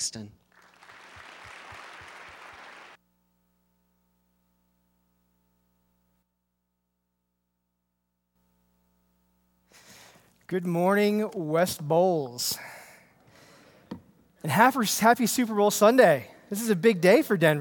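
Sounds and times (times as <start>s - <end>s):
speech: 0.0s - 0.4s, 10.5s - 12.7s, 14.4s - 17.5s
steady low electrical hum: 0.1s - 17.5s
audience applause: 0.5s - 3.0s.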